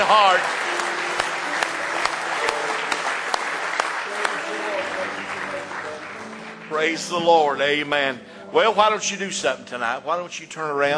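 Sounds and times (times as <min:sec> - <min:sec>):
speech: 0:00.0 - 0:00.6, 0:06.7 - 0:10.9
audience hand clap of praise: 0:00.0 - 0:08.2.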